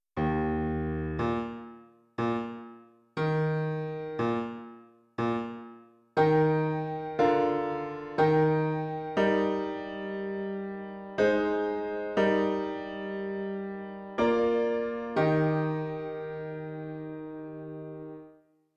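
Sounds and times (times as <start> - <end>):
piano: 0.2 - 18.5.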